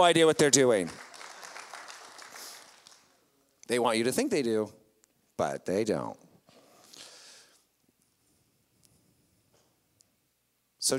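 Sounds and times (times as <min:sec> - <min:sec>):
speech: 0:00.0 - 0:01.0, 0:03.7 - 0:04.8, 0:05.4 - 0:06.2
audience applause: 0:00.7 - 0:03.2.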